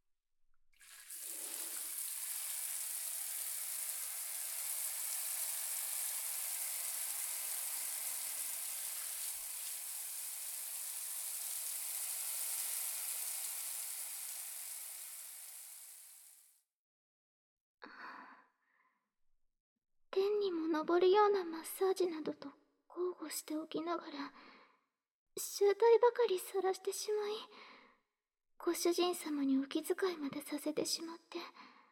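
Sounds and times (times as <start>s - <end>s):
shower water rinsing: 0.8s - 16.5s
speech: 20.3s - 24.6s, 25.4s - 27.7s, 28.6s - 31.7s.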